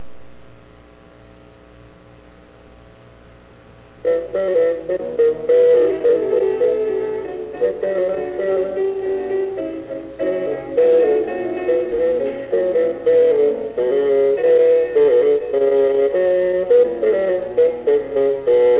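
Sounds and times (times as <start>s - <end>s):
bassoon: 4.0s - 18.7s.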